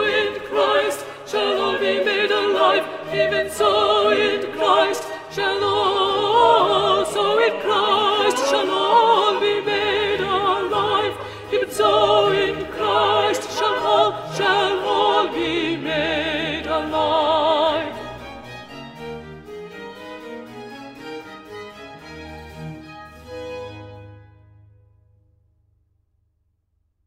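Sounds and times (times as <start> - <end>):
contraltos singing: 0.0 - 18.6.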